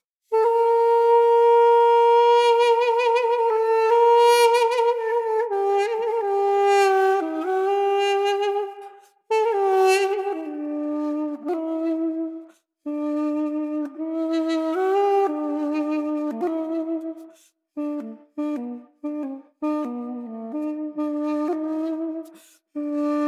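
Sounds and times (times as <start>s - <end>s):
duduk: 0.3s - 23.2s.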